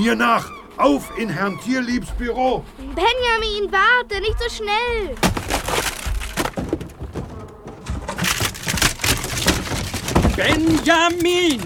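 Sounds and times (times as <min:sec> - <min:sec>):
speech: 0:00.0 - 0:05.5, 0:10.4 - 0:11.6
splintering and cracking wood: 0:05.1 - 0:11.6
heavy crash through a wooden door: 0:05.2 - 0:11.6.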